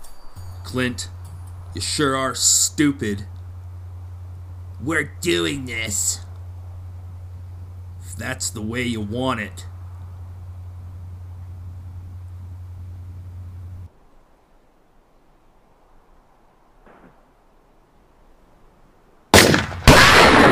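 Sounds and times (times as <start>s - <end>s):
low steady hum: 0.0s - 20.5s
speech: 0.7s - 3.4s, 4.8s - 6.3s, 8.2s - 9.7s
gunshots: 19.3s - 20.5s.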